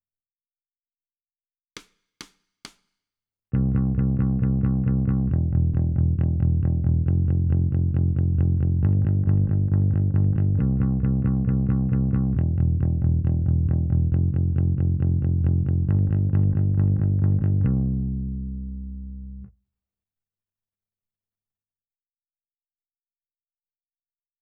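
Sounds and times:
bass: 3.5s - 19.6s.

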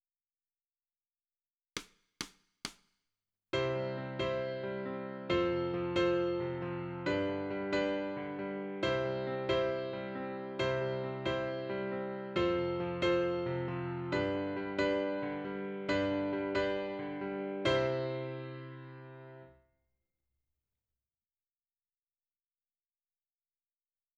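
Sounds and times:
piano: 3.5s - 19.6s.

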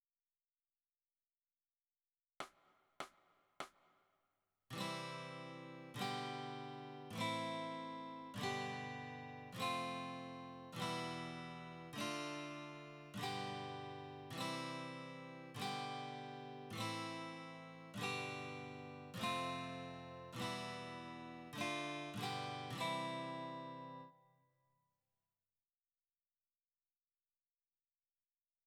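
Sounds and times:
guitar: 4.7s - 24.4s.

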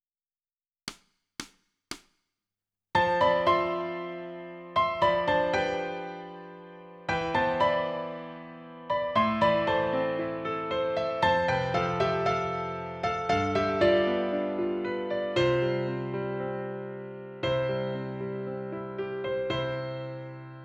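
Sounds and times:
piano: 3.0s - 20.6s.

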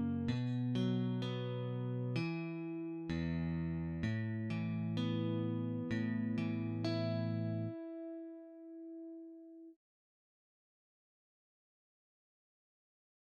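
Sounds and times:
electric guitar: 0.0s - 9.2s.

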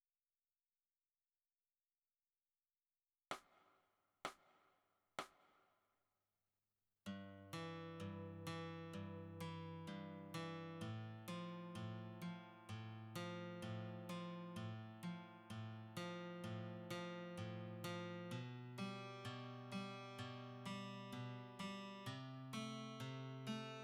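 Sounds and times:
guitar: 7.1s - 23.8s.

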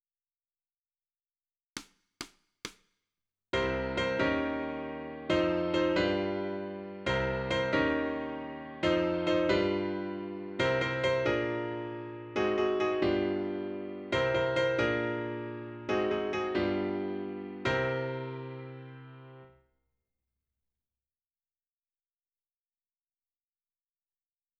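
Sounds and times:
piano: 3.6s - 19.6s.

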